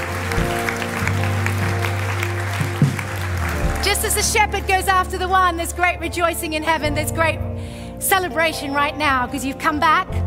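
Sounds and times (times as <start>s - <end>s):
audience applause: 0.0s - 4.7s
speech: 4.2s - 10.2s.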